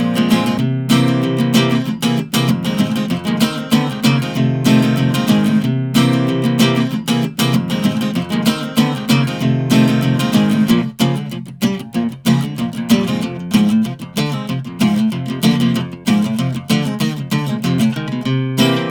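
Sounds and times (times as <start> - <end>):
drunken guitar playing: 0.0 - 18.8.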